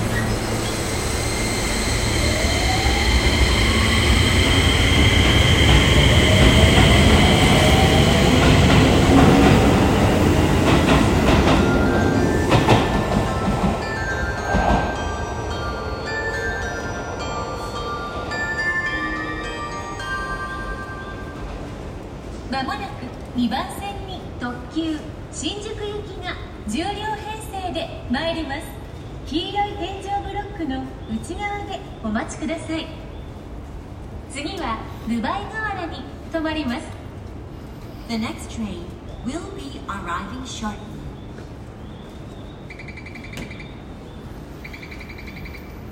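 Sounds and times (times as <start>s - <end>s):
Keio Line train approaching Seiseki-Sakuragaoka: 0.0s - 45.9s.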